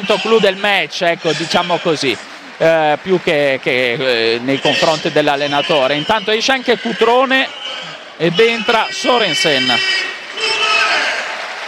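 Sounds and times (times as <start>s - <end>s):
stadium crowd applauding: 0.0s - 7.4s, 8.3s - 11.6s
speech: 0.0s - 10.1s.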